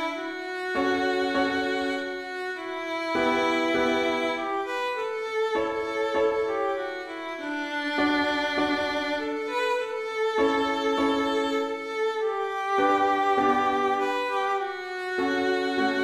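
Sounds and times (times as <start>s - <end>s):
piano: 0.0s - 16.0s
violin: 0.0s - 16.0s.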